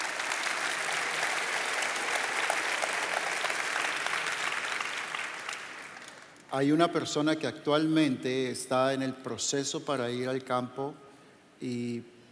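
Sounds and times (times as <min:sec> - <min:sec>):
audience applause: 0:00.0 - 0:06.4
speech: 0:06.5 - 0:11.0, 0:11.6 - 0:12.1.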